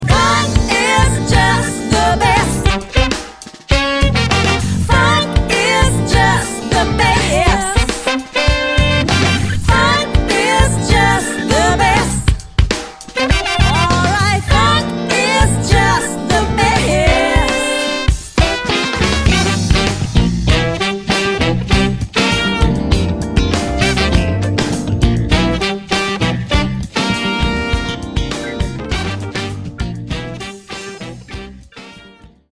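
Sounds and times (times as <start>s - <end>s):
funk music: 0.0s - 32.5s.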